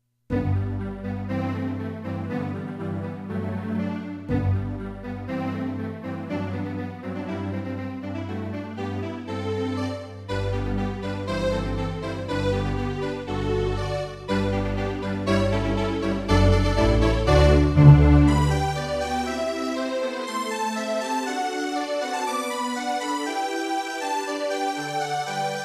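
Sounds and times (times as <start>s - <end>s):
prelude: 0.3s - 25.6s.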